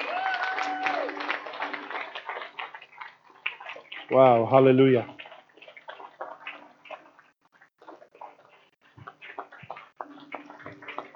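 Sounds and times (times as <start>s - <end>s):
audience applause: 0.0s - 2.9s
speech: 4.1s - 5.2s.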